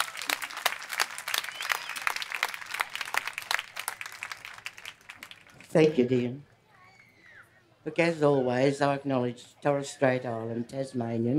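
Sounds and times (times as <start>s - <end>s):
audience applause: 0.0s - 6.1s
speech: 5.7s - 6.5s, 7.9s - 11.3s.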